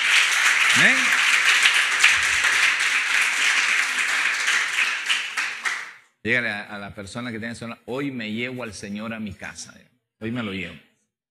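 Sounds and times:
audience applauding: 0.0s - 6.0s
speech: 0.8s - 1.2s, 6.2s - 10.9s.

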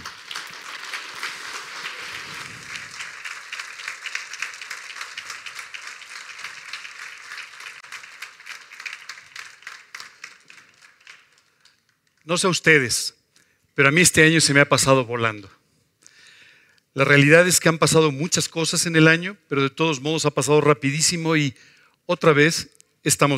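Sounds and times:
crowd welcoming applause: 0.0s - 12.2s
speech: 12.3s - 13.2s, 13.8s - 15.6s, 17.0s - 23.3s.

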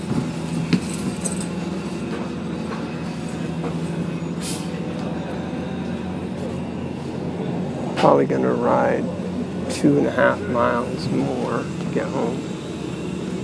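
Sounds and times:
sounds on a moving train: 0.0s - 13.4s
speech: 8.1s - 12.5s.

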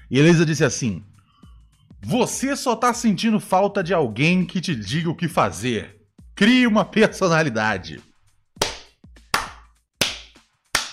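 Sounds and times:
speech: 0.1s - 1.1s, 2.0s - 8.1s
applause sound effect: 8.6s - 10.9s.

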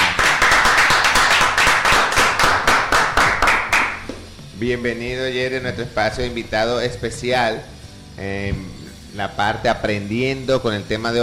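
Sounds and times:
applause for arriving guest: 0.0s - 4.0s
speech: 4.6s - 11.2s.

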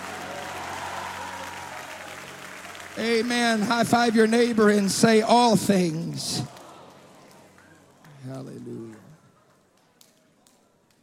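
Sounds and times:
audience clapping hands: 0.0s - 11.0s
faint crowd noise: 0.0s - 11.0s
speech: 3.0s - 6.5s.

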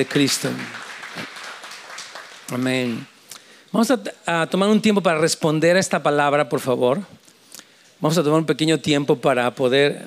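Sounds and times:
speech: 0.0s - 0.9s, 2.5s - 3.1s, 3.7s - 7.2s, 8.0s - 10.0s
audience applause: 0.0s - 3.1s.

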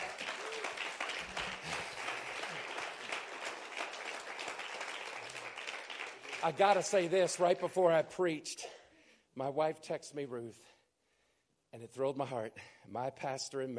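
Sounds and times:
crowd applause: 0.0s - 7.7s
speech: 6.4s - 8.6s, 9.4s - 10.7s, 11.7s - 13.7s.

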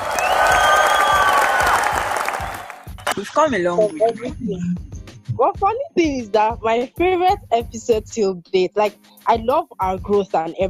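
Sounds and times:
many hands clapping: 0.0s - 3.2s
speech: 3.2s - 10.6s.

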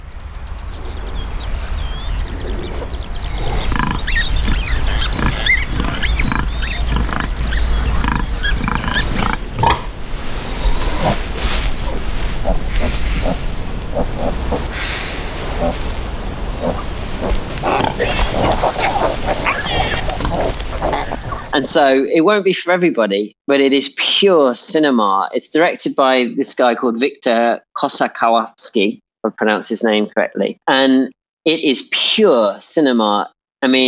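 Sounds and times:
outdoor wildlife sound: 0.0s - 22.2s
pig grunts and snuffles: 2.2s - 22.1s
speech: 21.8s - 33.8s.

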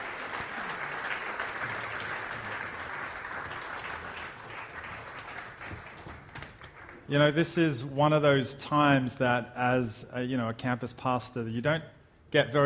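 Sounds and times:
audience clapping: 0.0s - 7.3s
speech: 7.1s - 12.6s.

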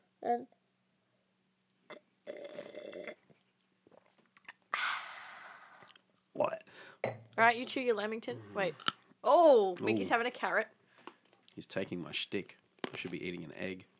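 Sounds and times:
speech: 0.2s - 0.6s, 7.4s - 10.8s, 11.6s - 13.9s
sipping water: 5.7s - 9.0s, 9.7s - 10.3s.

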